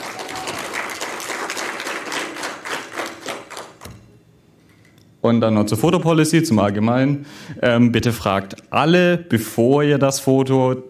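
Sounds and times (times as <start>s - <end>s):
audience applause: 0.0s - 3.8s
speech: 5.2s - 10.8s.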